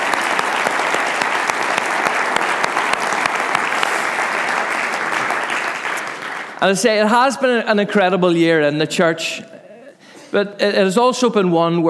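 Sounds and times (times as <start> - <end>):
audience applause: 0.0 - 7.0
speech: 6.6 - 9.5, 10.3 - 11.8.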